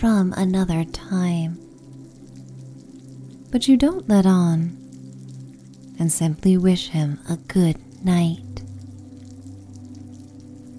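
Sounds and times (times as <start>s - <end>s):
speech: 0.0s - 1.6s, 3.5s - 4.8s, 6.0s - 8.5s
rain falling: 0.0s - 10.7s.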